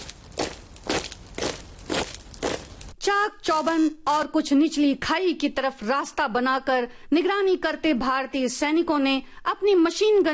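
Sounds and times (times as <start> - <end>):
footsteps on gritty ground: 0.0 - 3.0
speech: 3.1 - 10.3.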